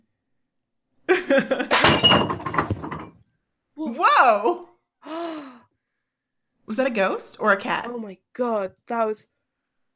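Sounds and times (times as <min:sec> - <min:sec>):
speech: 0:01.3 - 0:01.7, 0:04.2 - 0:04.7, 0:06.8 - 0:09.4
curtain rail clatter and crash: 0:01.7 - 0:03.2
curtain rail falling and smashing food bowl: 0:01.7 - 0:03.2.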